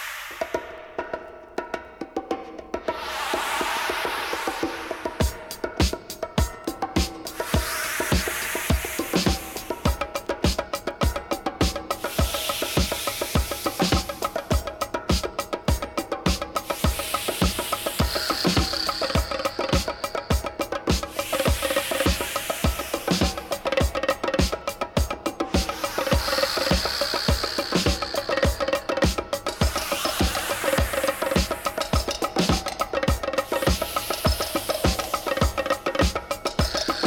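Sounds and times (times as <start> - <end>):
powerful ritual dance drums: 0.2 - 37.0.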